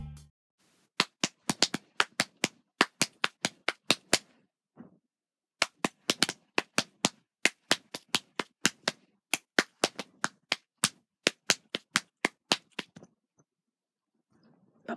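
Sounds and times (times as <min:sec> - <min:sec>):
rhythmic hand clapping with cup song: 0:01.0 - 0:04.3, 0:05.6 - 0:13.0.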